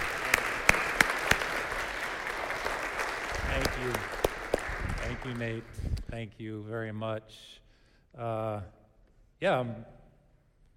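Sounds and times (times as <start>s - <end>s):
church congregation at Fellowship Church clapping to welcome a guest: 0.0s - 6.2s
steady hiss: 0.0s - 10.7s
speech: 5.2s - 8.8s, 9.4s - 10.0s.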